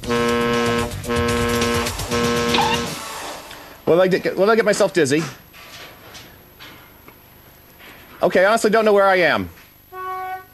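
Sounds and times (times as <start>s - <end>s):
honking horn on a fixed beacon: 0.0s - 3.2s, 9.9s - 10.5s
speech: 3.9s - 5.4s, 8.2s - 9.6s.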